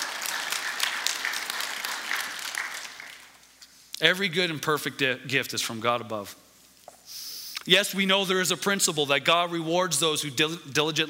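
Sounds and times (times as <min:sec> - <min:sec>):
audience clapping: 0:00.0 - 0:03.6
speech: 0:04.0 - 0:06.4, 0:07.6 - 0:11.0.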